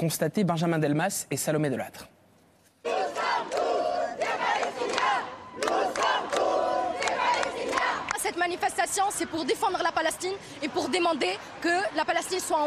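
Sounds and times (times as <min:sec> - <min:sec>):
speech: 0:00.0 - 0:02.2, 0:08.5 - 0:12.6
crowd chanting slogans at a pro-Palestinian rally on Place de la République in Paris: 0:02.8 - 0:12.6.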